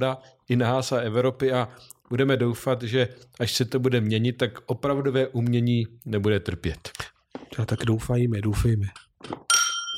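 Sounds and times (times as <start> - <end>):
speech: 0.0 - 9.9
glasses clinking in a toast: 9.3 - 9.9.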